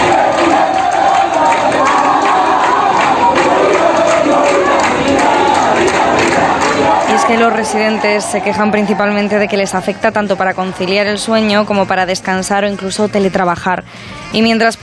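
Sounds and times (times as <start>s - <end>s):
pilgrims shouting: 0.0s - 11.2s
pilgrims singing: 0.0s - 12.0s
speech: 7.4s - 14.8s.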